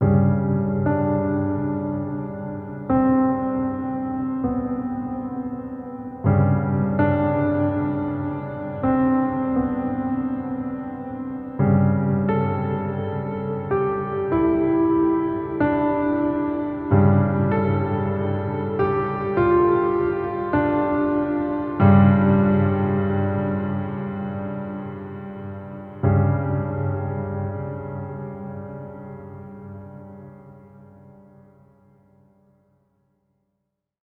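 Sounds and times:
piano theme: 0.0 - 32.4.

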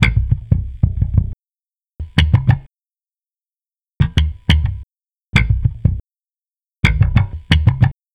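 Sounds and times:
electric bass: 0.0 - 1.4, 2.0 - 2.7, 4.0 - 4.8, 5.4 - 6.0, 6.8 - 7.9.

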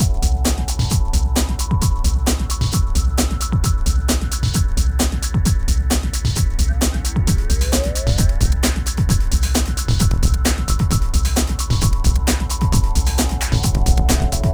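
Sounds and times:
hardcore breakbeat at 132 BPM in E minor: 0.0 - 14.5.

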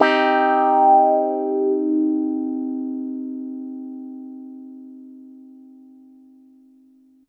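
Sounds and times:
piano clavinet in minor key, medium: 0.0 - 4.9.

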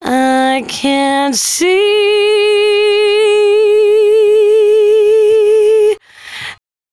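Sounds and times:
velvet vocal in C sharp at 113 bpm: 0.0 - 6.6.

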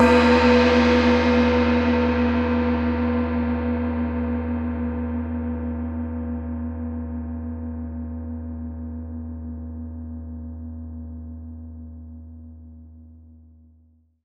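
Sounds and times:
mixed gongs in Wuhan PRC: 0.0 - 8.4.

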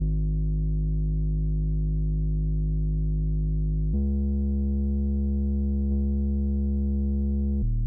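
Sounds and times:
bass in G sharp major: 0.0 - 7.8.

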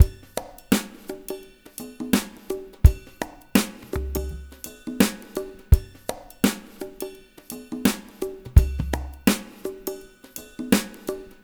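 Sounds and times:
drum mix: 0.0 - 1.4, 2.0 - 7.1, 7.7 - 10.0.

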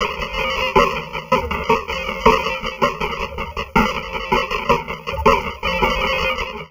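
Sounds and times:
heavily processed drum loop: 0.0 - 6.6.

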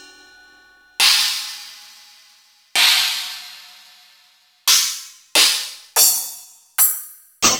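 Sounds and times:
Yamaha DTXpress electronic drum cymbal: 1.0 - 2.2, 2.8 - 7.5.

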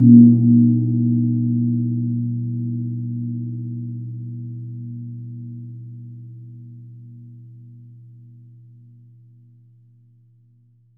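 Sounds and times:
gong struck at A#2: 0.0 - 7.8.

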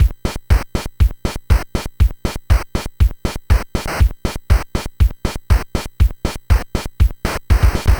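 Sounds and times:
NES eight-bit drum loop: 0.0 - 7.9.

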